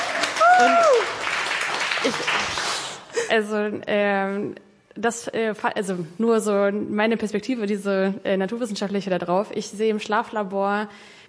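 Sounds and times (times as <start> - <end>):
audience applause: 0.0 - 3.2
speech: 0.6 - 0.9, 2.0 - 2.6, 3.3 - 11.2.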